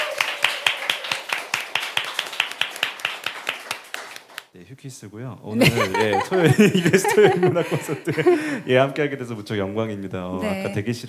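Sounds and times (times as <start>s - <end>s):
hands clapping in rhythm: 0.0s - 4.6s
speech: 4.6s - 11.0s
laughter: 5.6s - 8.9s.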